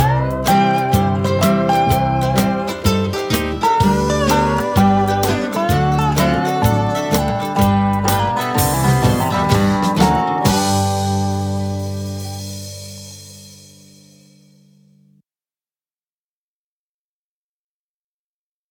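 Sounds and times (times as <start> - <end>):
blues music: 0.0 - 14.7.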